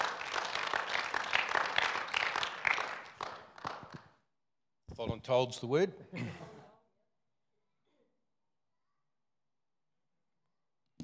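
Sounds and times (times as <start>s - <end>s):
audience applause welcoming a speaker: 0.0s - 4.0s
speech: 5.1s - 6.5s.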